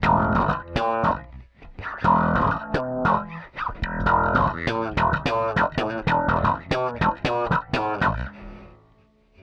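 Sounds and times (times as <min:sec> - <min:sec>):
slap bass ending a couplet: 0:00.0 - 0:08.7.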